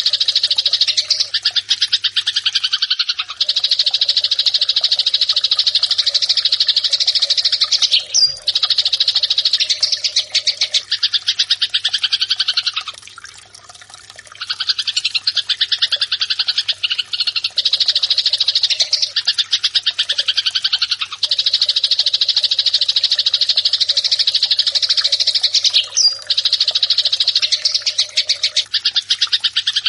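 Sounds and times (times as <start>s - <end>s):
Eurasian tree sparrow fighting call: 0.0s - 12.9s, 14.4s - 29.8s.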